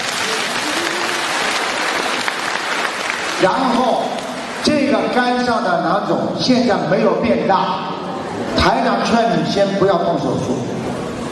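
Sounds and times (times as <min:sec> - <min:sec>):
audience applause: 0:00.0 - 0:04.7
speech: 0:03.4 - 0:04.1, 0:04.9 - 0:10.8.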